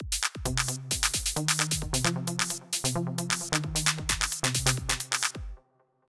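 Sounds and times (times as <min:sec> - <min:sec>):
trance music: 0:00.0 - 0:05.6.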